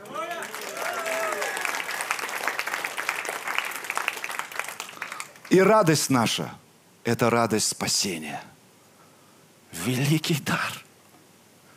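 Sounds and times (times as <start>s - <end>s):
audience applause: 0.0s - 5.6s
speech: 5.5s - 8.5s, 9.8s - 10.8s.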